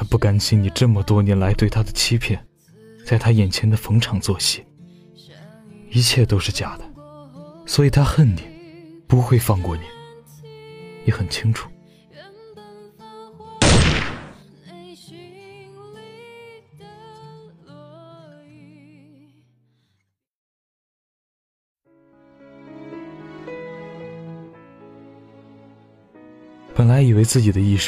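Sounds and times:
speech: 0.2s - 6.9s, 7.7s - 8.5s, 9.1s - 10.0s, 11.1s - 11.7s, 27.0s - 27.8s
gunshot from the video game The Invisible Guardian: 13.6s - 14.4s
melodic video game music: 22.0s - 27.8s.

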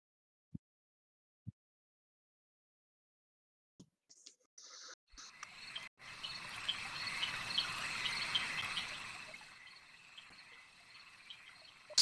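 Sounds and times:
frogs croaking and trilling in a dark swamp at night: 5.2s - 11.9s.

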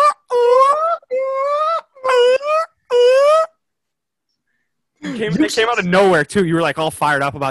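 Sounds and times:
person imitating bird calls: 0.0s - 3.6s
speech: 5.2s - 7.4s.

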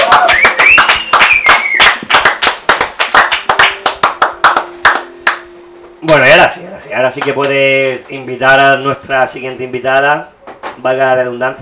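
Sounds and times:
applause: 0.0s - 5.4s
speech: 7.1s - 11.6s.

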